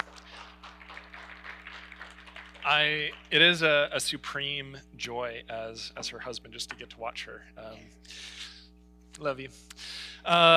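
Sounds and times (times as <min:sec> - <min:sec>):
audience applause: 0:00.0 - 0:03.7
low steady hum: 0:00.0 - 0:10.5
speech: 0:02.7 - 0:08.5, 0:09.2 - 0:10.5.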